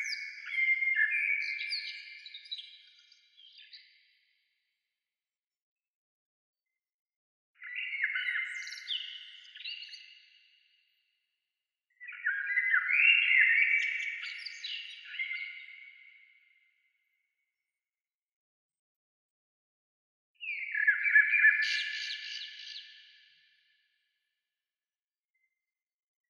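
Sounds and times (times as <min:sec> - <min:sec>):
bird singing twittering phrases: 0:00.0 - 0:04.1, 0:07.6 - 0:10.6, 0:11.9 - 0:17.2, 0:20.4 - 0:23.0.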